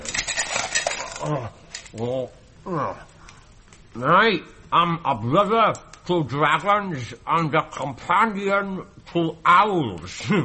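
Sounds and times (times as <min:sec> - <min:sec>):
small hard pebbles rattling in a dish: 0:00.0 - 0:02.0
speech: 0:01.2 - 0:03.1, 0:04.0 - 0:10.4
short voiced vocal sounds: 0:01.2 - 0:03.2.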